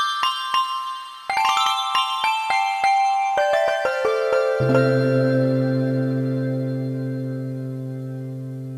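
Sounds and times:
Oriental Bells factory preset demo: 0:00.0 - 0:08.7.

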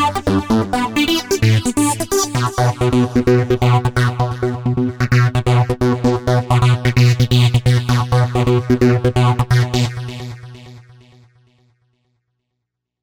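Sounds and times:
overdriven synthesizer: 0:00.0 - 0:09.0.

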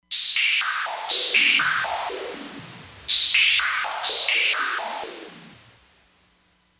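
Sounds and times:
laser sound effect: 0:00.1 - 0:05.8.

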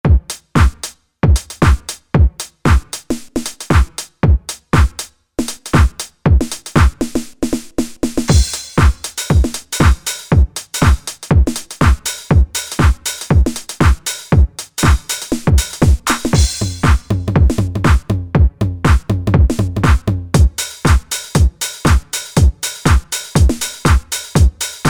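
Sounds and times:
house drum kit: 0:00.0 - 0:24.8.

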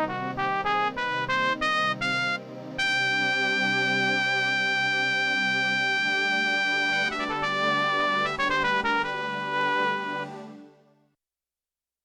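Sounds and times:
breath trumpet split on Yamaha TX16W synth: 0:00.2 - 0:10.6.

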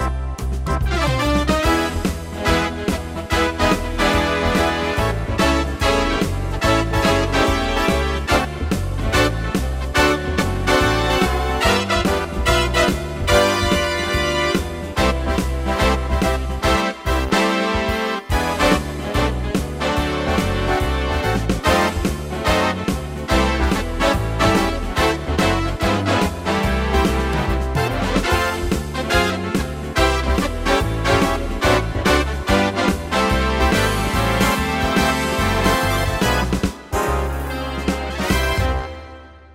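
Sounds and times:
big band orchestra playing swing and jazz: 0:00.0 - 0:39.5.

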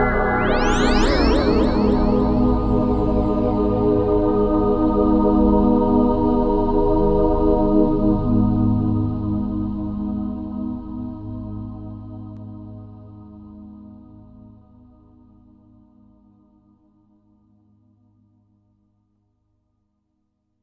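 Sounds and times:
avant choir: 0:00.0 - 0:14.6.

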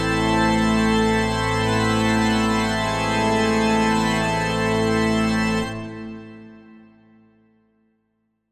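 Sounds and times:
pipe organ tutti: 0:00.0 - 0:06.6.

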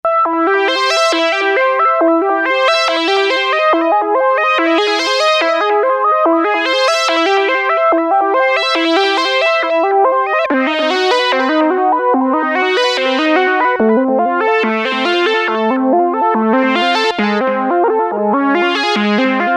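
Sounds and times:
lead synth: 0:00.1 - 0:19.5.

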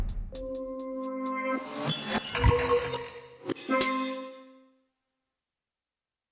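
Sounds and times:
rhythm on a Roland JV-880 synthesizer: 0:00.2 - 0:04.4.

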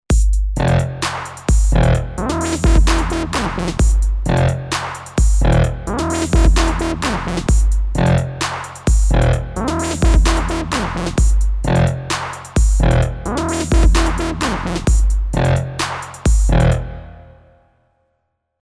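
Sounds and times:
trap beat: 0:00.1 - 0:16.8.

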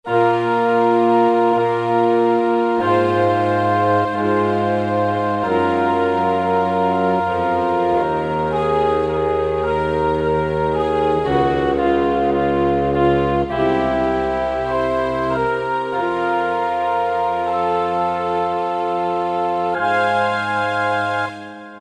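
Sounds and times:
orchestral music: 0:00.1 - 0:21.7.

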